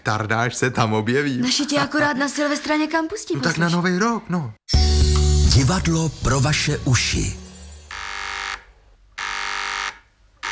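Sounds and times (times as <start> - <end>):
speech: 0.0 - 7.4
two-way radio call buzzer: 7.9 - 10.5.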